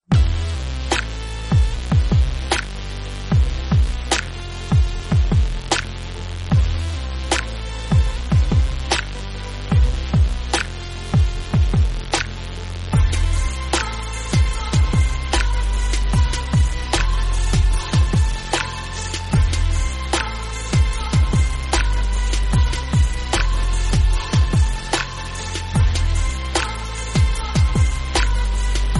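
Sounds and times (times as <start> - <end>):
gangsta beat: 0.0 - 28.9.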